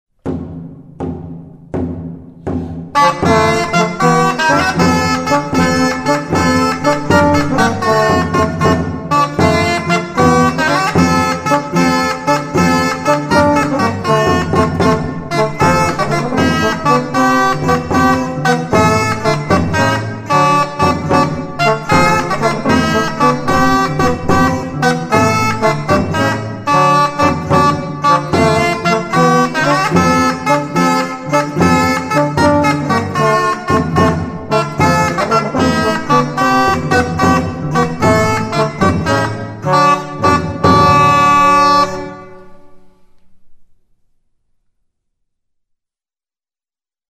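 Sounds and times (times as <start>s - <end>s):
rauschpfeife shawm: 0.1s - 43.9s.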